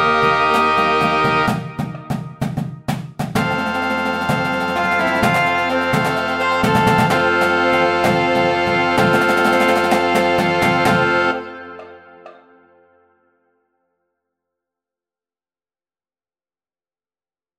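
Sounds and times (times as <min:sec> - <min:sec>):
percussion: 0:00.0 - 0:12.8.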